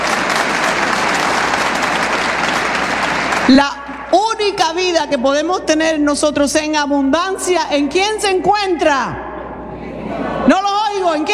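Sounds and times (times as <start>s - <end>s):
audience applause: 0.0s - 3.5s
speech: 3.5s - 9.2s, 10.5s - 11.3s.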